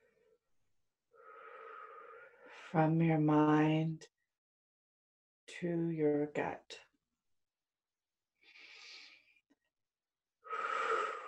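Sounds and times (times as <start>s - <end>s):
slow deep breath: 1.2s - 2.7s, 8.4s - 9.3s, 10.5s - 11.2s
speech: 2.6s - 4.2s, 5.6s - 6.9s.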